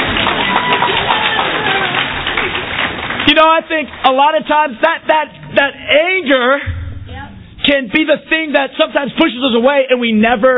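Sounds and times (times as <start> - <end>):
audience clapping: 0.0 - 5.4
speech: 3.4 - 6.7, 7.7 - 10.5.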